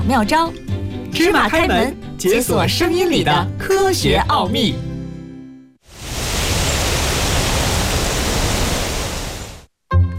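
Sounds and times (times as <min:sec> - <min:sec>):
speech: 0:00.1 - 0:00.6, 0:01.2 - 0:04.9
cool autumn wind blowing: 0:05.9 - 0:09.7.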